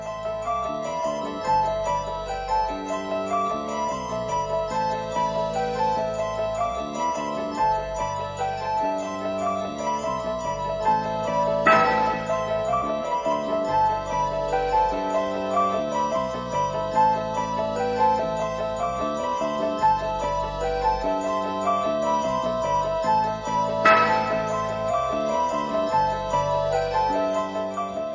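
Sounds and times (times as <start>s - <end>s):
instrumental horror film theme with tinkling bell-like melody: 0.0s - 28.1s.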